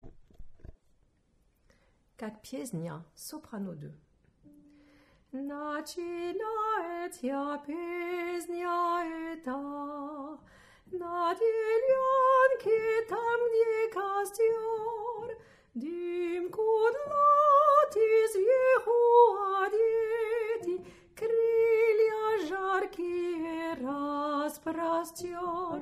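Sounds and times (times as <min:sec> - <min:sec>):
soprano singing: 0:05.3 - 0:25.7.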